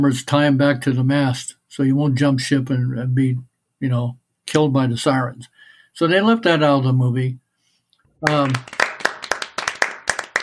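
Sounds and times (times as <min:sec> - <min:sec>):
speech: 0:00.0 - 0:07.4, 0:08.2 - 0:08.8
hand clapping: 0:08.2 - 0:10.4.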